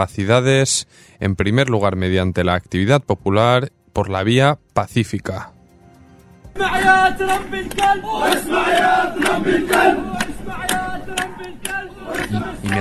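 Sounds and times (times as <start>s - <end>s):
speech: 0.0s - 5.5s, 6.6s - 12.7s
claps: 6.6s - 12.7s
protesters chanting slogans in the street: 6.6s - 12.7s.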